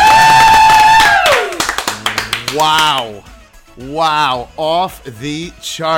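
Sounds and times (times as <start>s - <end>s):
live studio audience hand claps: 0.0s - 3.2s
sustained voiced tone: 1.8s - 3.0s
speech: 2.6s - 5.9s.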